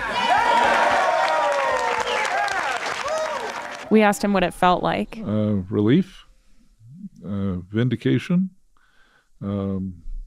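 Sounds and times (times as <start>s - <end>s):
loud dense crowd roaring and cheering: 0.0s - 4.0s
steady wash of applause: 0.0s - 4.0s
speech: 3.9s - 6.3s, 7.2s - 8.6s, 9.4s - 10.1s.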